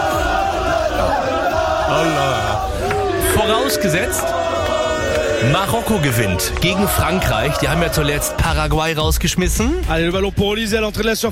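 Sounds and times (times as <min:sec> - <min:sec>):
chant-like calls: 0:00.0 - 0:08.8
dense crowd of football fans celebrating with shouts and cheering: 0:00.0 - 0:09.1
speech: 0:03.6 - 0:04.4, 0:05.4 - 0:11.2.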